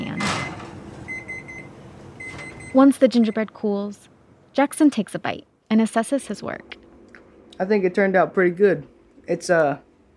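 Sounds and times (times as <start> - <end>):
oven timer beeping: 0.0 - 3.7
speech: 2.7 - 6.8, 7.6 - 9.9.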